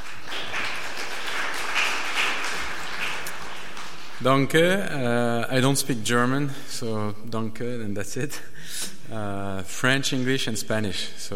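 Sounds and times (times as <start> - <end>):
audience applause: 0.0 - 4.6
speech: 4.2 - 11.3.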